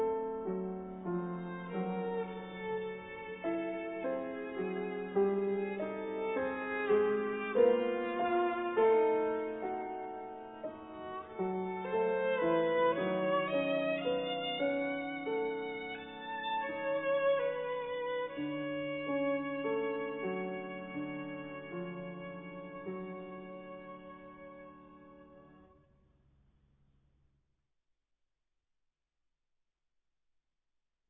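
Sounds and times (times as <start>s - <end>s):
violin playing: 0.9s - 25.6s.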